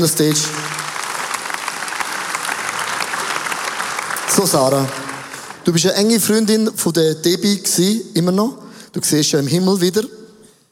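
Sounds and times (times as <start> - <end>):
speech: 0.0 - 0.8, 4.4 - 5.0, 5.6 - 10.2
audience applause: 0.0 - 6.0.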